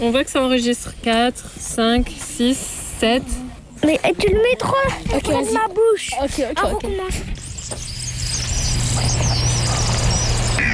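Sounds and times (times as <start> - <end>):
speech: 0.0 - 7.9, 9.0 - 9.7
kingfisher very high-pitched whistling calls: 7.4 - 10.7.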